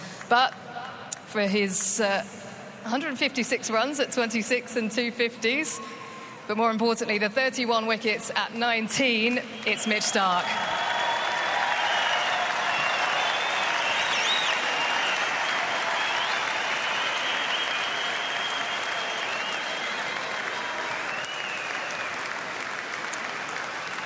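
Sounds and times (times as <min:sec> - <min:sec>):
speech: 0:00.3 - 0:00.7, 0:01.3 - 0:10.7
hometown crowd applause: 0:09.6 - 0:24.0.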